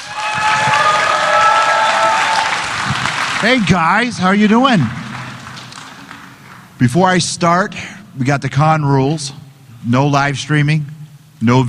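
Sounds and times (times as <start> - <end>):
audience applause welcoming a moderator at a fan convention: 0.0 - 6.7
speech: 3.4 - 5.0, 6.8 - 11.6.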